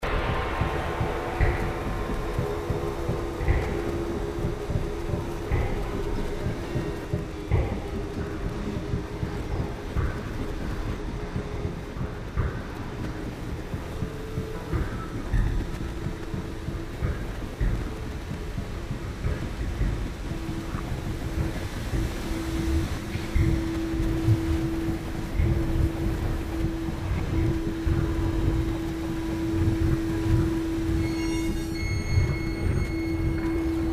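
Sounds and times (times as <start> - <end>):
haunted machinery: 0.0 - 33.9.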